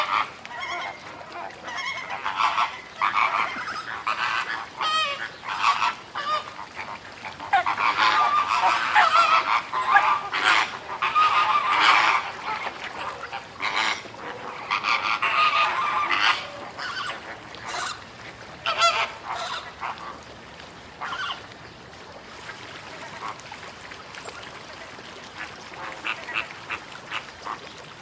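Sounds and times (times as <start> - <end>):
flamingo calling: 0.0 - 18.0, 18.6 - 20.2, 21.0 - 21.4.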